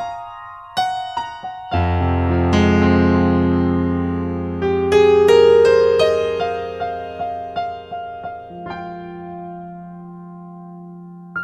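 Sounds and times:
Yamaha A4000 piano: 0:00.0 - 0:11.4.

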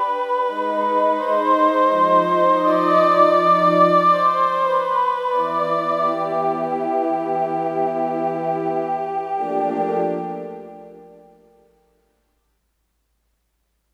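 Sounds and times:
synthesized voxy women singing: 0:00.0 - 0:10.0.

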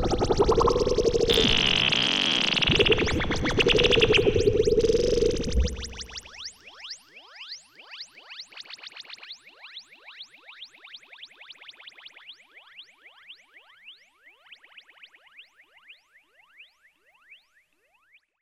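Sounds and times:
Roland Jupiter-8 synthesizer bird sounds: 0:00.0 - 0:06.2.

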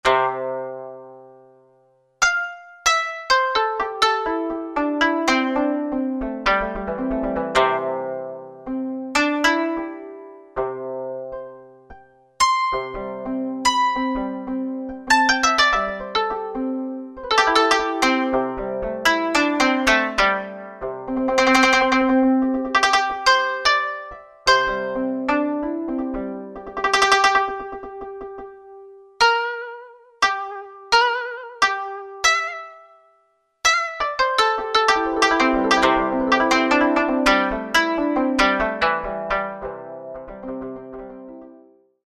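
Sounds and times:
koto: 0:00.0 - 0:41.8.

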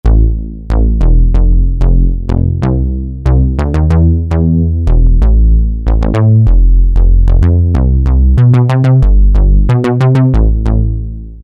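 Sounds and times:
Alesis Micron synthesizer bass: 0:00.0 - 0:11.4.

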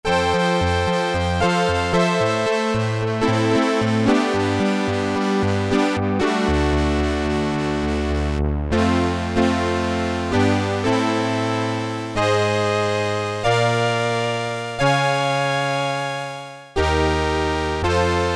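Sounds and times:
Korg Poly-800 synthesizer: 0:00.0 - 0:18.3.

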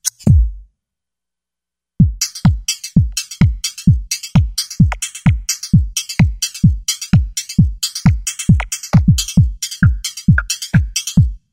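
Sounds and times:
hard house drum kit on a Roland V-Synth: 0:02.0 - 0:11.4.

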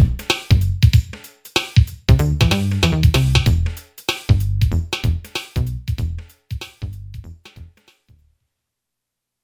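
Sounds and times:
hip hop beat on a Boss DR-3 drum machine: 0:00.0 - 0:07.3.

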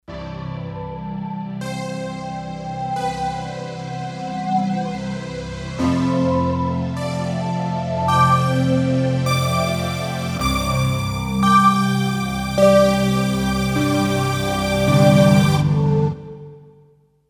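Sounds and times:
Kawai K5000S synthesizer: 0:00.0 - 0:16.7.

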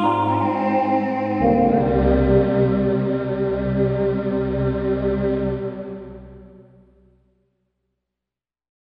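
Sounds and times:
Korg MSC-8S gong choir percussion: 0:00.1 - 0:06.6.

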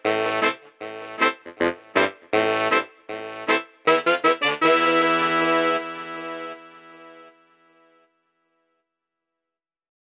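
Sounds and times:
dub horns: 0:00.0 - 0:05.8.

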